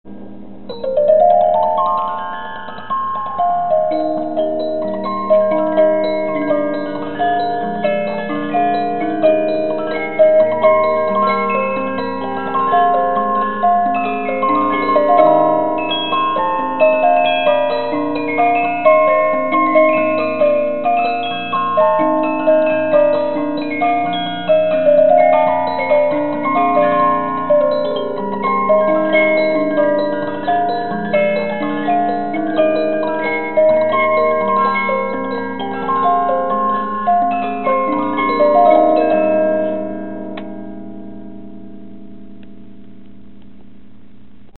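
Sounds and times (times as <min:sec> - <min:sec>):
music box: 0:00.1 - 0:43.1.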